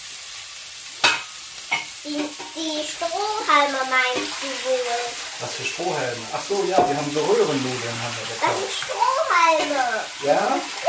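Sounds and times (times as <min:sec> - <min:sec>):
meatballs frying in a pan: 0:00.0 - 0:10.8
speech: 0:02.0 - 0:10.8.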